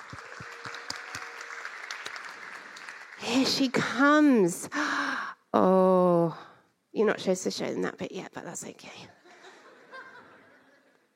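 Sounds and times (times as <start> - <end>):
audience applause: 0.0 - 3.5
speech: 3.2 - 9.2
laughter: 9.2 - 11.1.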